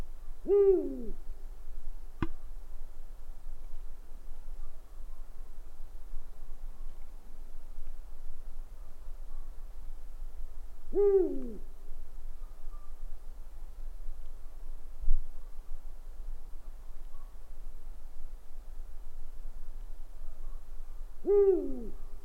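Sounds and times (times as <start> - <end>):
owl hooting: 0.4 - 1.2, 10.9 - 11.7, 21.2 - 22.0.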